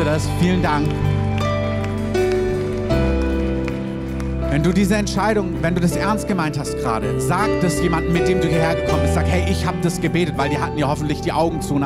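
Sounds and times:
speech: 0.1 - 1.2, 4.5 - 11.8
audience applause: 0.7 - 4.4.

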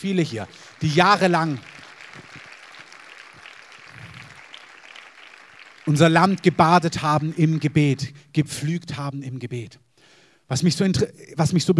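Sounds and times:
speech: 0.0 - 1.8, 5.9 - 9.8, 10.5 - 11.7
audience applause: 0.1 - 8.0.

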